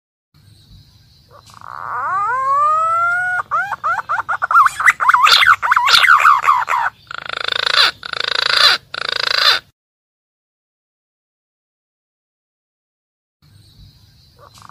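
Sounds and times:
green pigeon calling, used as a lure for wild birds: 1.3s - 9.7s, 14.4s - 14.7s.

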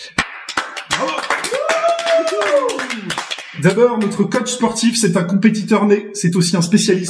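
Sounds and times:
applause: 0.0s - 4.2s
speech: 2.4s - 7.0s.

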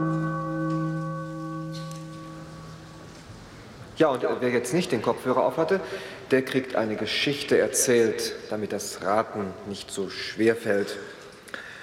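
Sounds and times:
gong signal ringing: 0.0s - 3.2s
speech: 4.0s - 11.2s.

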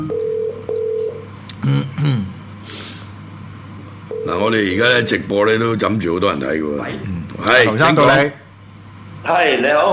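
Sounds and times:
telephone line tones as a call connects during a live broadcast: 0.0s - 1.2s
speech: 1.6s - 2.3s, 4.4s - 8.4s, 9.2s - 9.9s.

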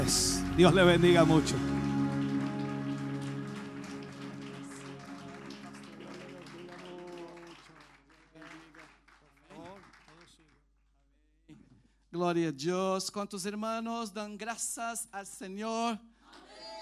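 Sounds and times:
speech: 0.1s - 1.8s, 12.2s - 16.1s
loud audience applause: 1.2s - 10.5s.

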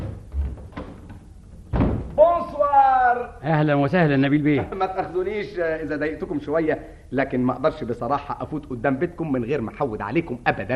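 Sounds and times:
door thud opening: 0.0s - 2.3s
speech: 3.4s - 10.7s.

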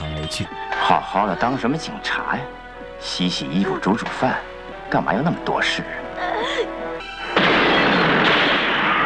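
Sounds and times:
music: 0.0s - 8.3s
speech: 0.3s - 6.8s
gas explosion in a home: 7.4s - 9.0s.

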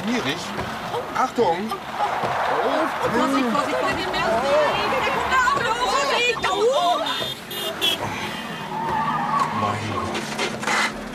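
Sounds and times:
speech: 0.1s - 6.7s
car skidding past with squealing tires: 0.2s - 11.1s.

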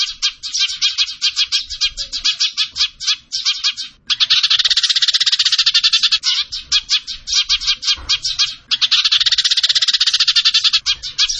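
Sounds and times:
bird chattering song: 0.0s - 11.3s.

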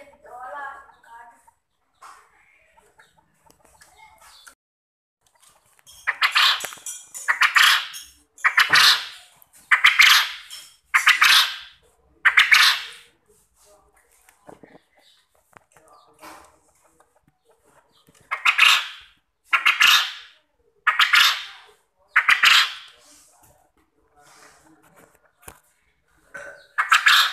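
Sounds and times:
quail calling: 6.0s - 13.1s, 18.2s - 23.0s, 26.6s - 27.3s.

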